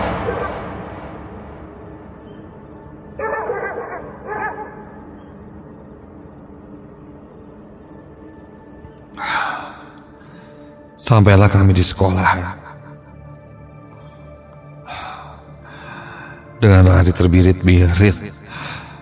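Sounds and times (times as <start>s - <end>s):
dog barking: 0.2s - 0.7s, 3.2s - 5.0s
dog howling: 3.2s - 5.0s
speech: 11.1s - 12.6s, 16.6s - 18.4s.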